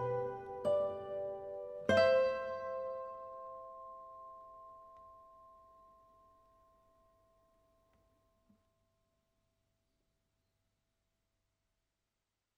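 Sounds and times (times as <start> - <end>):
guitars: 0.0 - 4.7.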